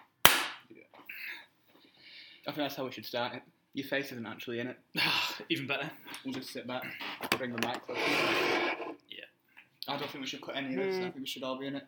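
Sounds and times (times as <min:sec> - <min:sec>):
hand clap for audio sync: 0:00.0 - 0:00.6
speech: 0:02.4 - 0:08.8, 0:09.9 - 0:11.8.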